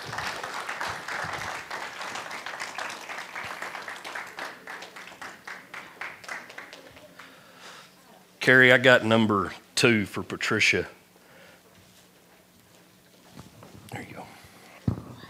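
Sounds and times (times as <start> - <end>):
audience hand clapping: 0.0 - 7.4
speech: 8.4 - 11.0.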